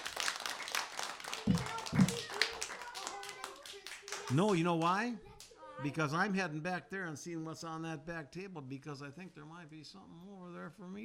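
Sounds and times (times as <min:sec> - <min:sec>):
audience clapping: 0:00.0 - 0:05.0
speech: 0:04.3 - 0:11.0.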